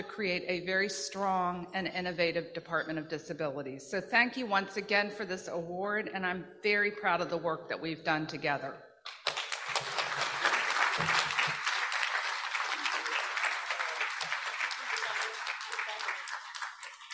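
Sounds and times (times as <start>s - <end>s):
speech: 0.0s - 8.9s
audience applause: 9.1s - 17.1s.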